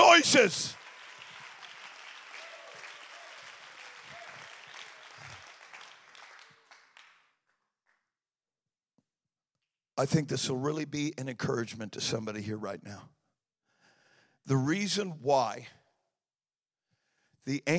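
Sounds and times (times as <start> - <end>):
large crowd applauding: 0.0 - 8.0
speech: 0.2 - 0.8, 10.0 - 13.2, 14.4 - 15.8, 17.4 - 17.7.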